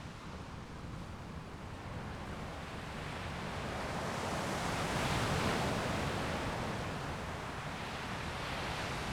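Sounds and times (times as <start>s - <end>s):
waves near a small bridge: 0.0s - 9.1s.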